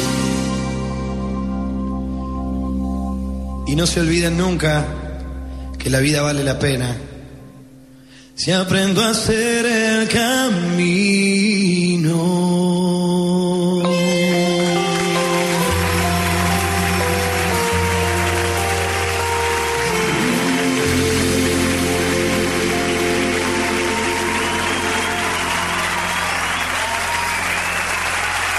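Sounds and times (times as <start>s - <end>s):
closing notes of a song: 0.0s - 8.1s, 13.4s - 28.5s
speech: 3.7s - 5.0s, 5.8s - 7.1s, 8.4s - 12.3s
audience applause: 14.6s - 28.5s.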